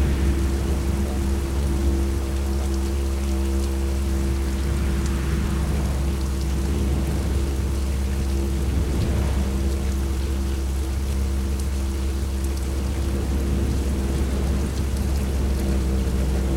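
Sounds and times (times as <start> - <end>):
ambient didgeridoo: 0.0 - 16.5.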